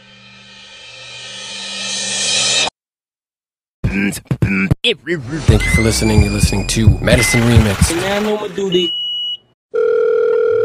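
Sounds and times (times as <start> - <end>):
speech: 4.0 - 9.0
telephone line ringing tone: 9.7 - 10.6.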